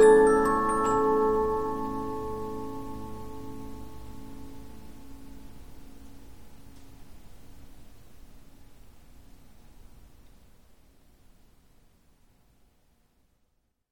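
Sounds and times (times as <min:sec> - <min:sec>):
Polyphon 15-inch disc music box playing: 0:00.0 - 0:04.2.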